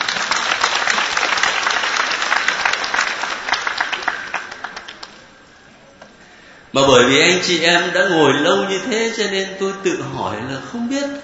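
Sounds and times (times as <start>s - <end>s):
audience applause: 0.0s - 5.3s
speech: 6.8s - 11.2s.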